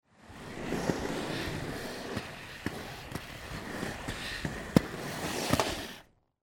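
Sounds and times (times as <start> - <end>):
skateboard rolling: 0.0 - 6.4.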